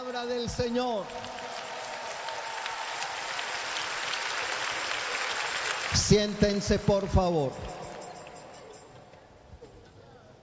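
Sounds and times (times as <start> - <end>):
speech: 0.2 - 1.3, 5.9 - 7.8
large audience applause: 1.0 - 8.8.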